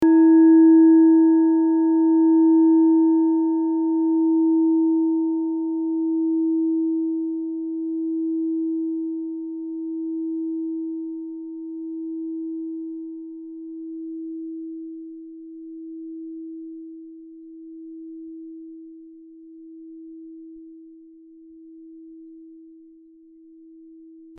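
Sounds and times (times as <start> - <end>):
klangschale singing bowl from Nepal: 0.0 - 24.3.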